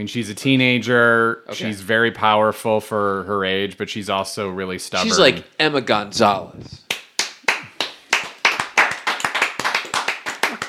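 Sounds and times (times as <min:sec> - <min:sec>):
speech: 0:00.0 - 0:06.8
people applauding: 0:06.9 - 0:10.6.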